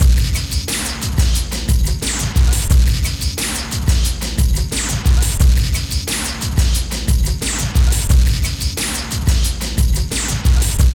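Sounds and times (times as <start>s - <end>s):
industrial techno music: 0.0s - 10.9s.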